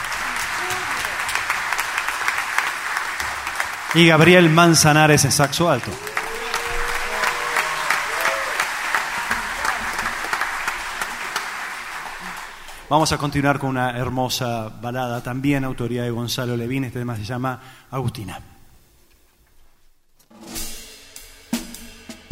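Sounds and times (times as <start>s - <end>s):
strong audience applause: 0.0s - 13.1s
man speaking through a microphone: 3.9s - 6.0s, 12.9s - 18.6s
speech: 3.9s - 6.1s, 12.9s - 18.5s.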